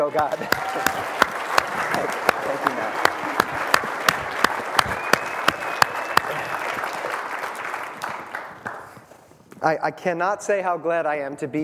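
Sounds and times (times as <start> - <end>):
speech: 0.0 - 3.1, 9.6 - 11.6
congregation applause in church: 0.0 - 9.1.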